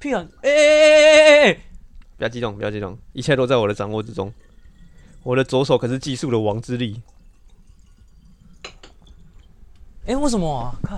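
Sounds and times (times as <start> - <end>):
speech: 0.0 - 4.5, 5.2 - 7.2, 10.1 - 10.9
water pouring from a kettle: 2.3 - 9.7
water splashing drips: 3.2 - 9.9.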